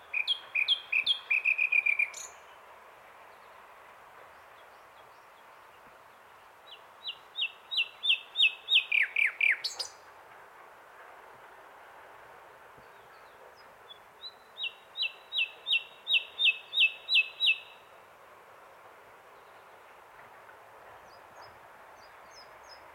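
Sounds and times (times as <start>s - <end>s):
common nightingale Luscinia megarhynchos song: 0.0s - 10.1s, 12.8s - 18.0s, 21.0s - 22.9s.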